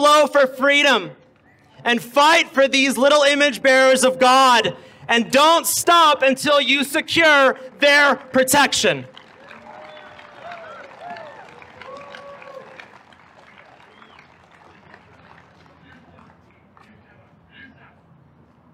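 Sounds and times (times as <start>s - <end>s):
speech: 0.2s - 1.2s, 1.8s - 9.2s
crowd applause: 7.4s - 17.2s.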